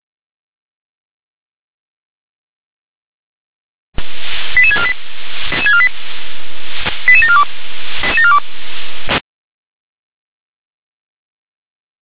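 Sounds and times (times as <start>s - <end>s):
hissy band-limited radio channel: 4.0s - 9.2s
radio dispatch alerting tones for firefighters: 4.6s - 5.9s, 7.1s - 8.4s.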